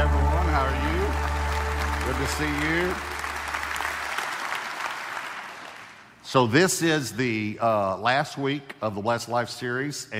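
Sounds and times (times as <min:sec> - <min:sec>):
church congregation applauding a pastor: 0:00.0 - 0:06.2
speech: 0:02.3 - 0:03.2, 0:06.3 - 0:10.1.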